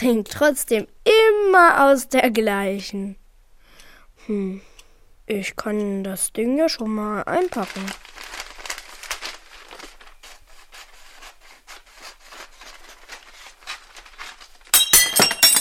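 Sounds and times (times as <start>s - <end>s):
speech: 0.0s - 3.2s, 4.3s - 4.7s, 5.3s - 8.2s
crash of clattering crockery: 14.7s - 15.5s
cup knocked over clinking and rattling: 14.7s - 15.5s.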